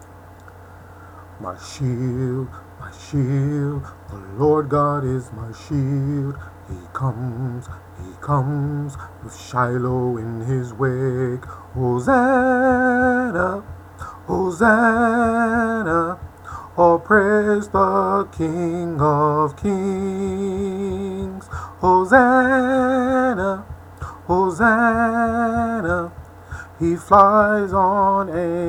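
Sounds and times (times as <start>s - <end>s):
battle song: 1.4s - 28.6s.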